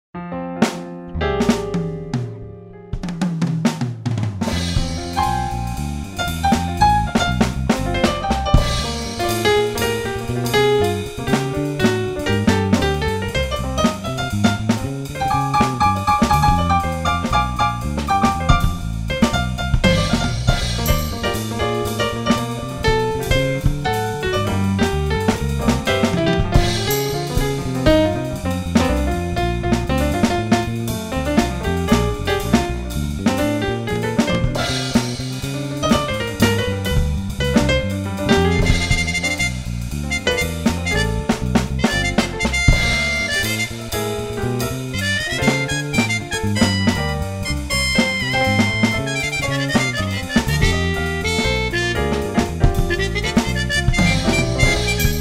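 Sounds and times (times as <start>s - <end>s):
improvised jazz: 0.3s - 55.1s.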